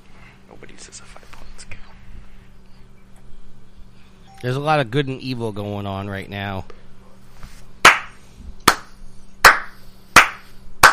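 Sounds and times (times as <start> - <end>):
speech: 4.4 - 6.8
slow clap: 7.8 - 10.9.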